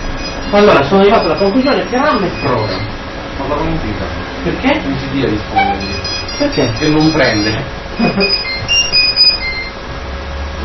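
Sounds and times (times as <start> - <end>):
train wheels squealing at a railway station: 0.0 - 2.9, 5.7 - 9.8
speech: 0.5 - 8.5.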